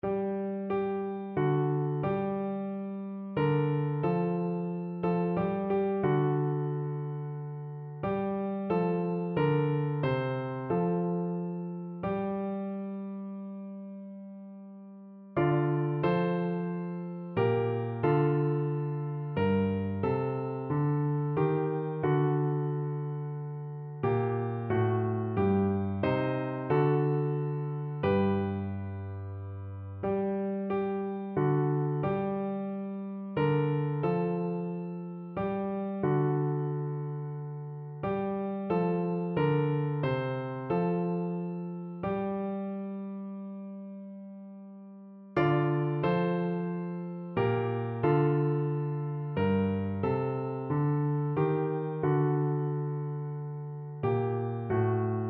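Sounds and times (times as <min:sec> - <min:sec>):
piano: 0:00.0 - 0:55.2.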